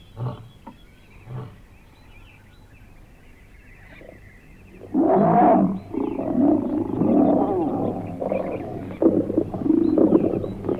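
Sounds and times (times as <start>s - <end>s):
lion grunting: 4.8s - 10.7s.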